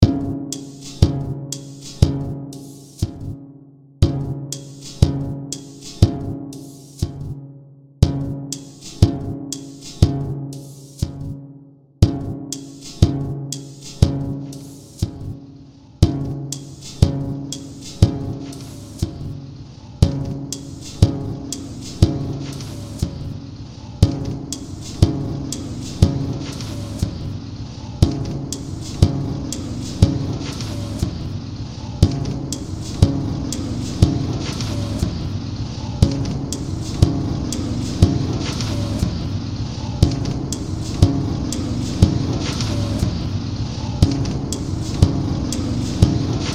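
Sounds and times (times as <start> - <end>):
beat: 0.0 - 3.4, 4.0 - 7.4, 8.0 - 11.4, 12.0 - 15.4, 16.0 - 19.4, 20.0 - 23.4, 24.0 - 43.4, 44.0 - 46.5
train machine sounds: 20.1 - 23.3, 24.0 - 46.5.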